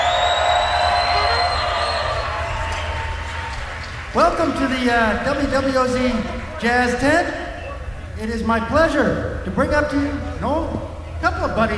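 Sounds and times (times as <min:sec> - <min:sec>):
crowd cheering at the WWOZ Jazz Tent: 0:00.0 - 0:07.6
speech: 0:04.4 - 0:07.4, 0:08.2 - 0:11.7.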